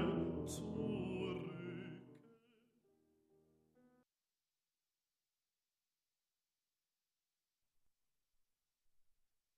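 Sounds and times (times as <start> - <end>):
piano accompaniment: 0.0 - 2.2
baritone singing night songs: 0.0 - 2.6.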